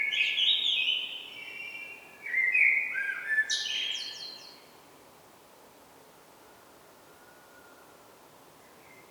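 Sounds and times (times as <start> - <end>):
common blackbird Turdus merula song: 0.0 - 4.7.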